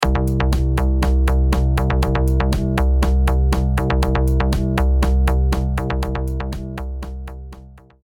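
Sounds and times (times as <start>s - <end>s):
house music: 0.0s - 8.0s.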